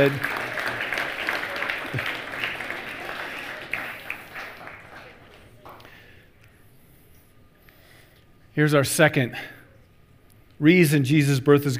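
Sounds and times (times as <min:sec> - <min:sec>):
speech: 0:00.0 - 0:00.4, 0:01.9 - 0:02.2, 0:08.6 - 0:09.6, 0:10.6 - 0:11.7
audience applause: 0:00.0 - 0:06.1.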